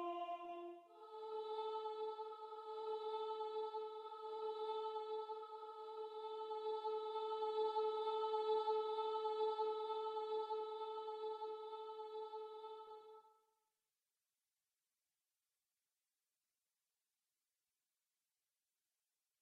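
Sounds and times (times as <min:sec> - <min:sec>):
soprano choir singing: 0:00.0 - 0:13.3.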